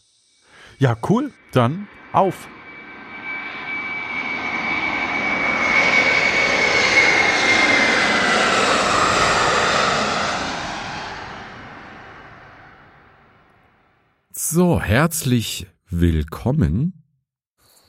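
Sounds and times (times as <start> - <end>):
airplane engine: 0.5 - 14.0
speech: 0.7 - 2.6, 14.5 - 17.0.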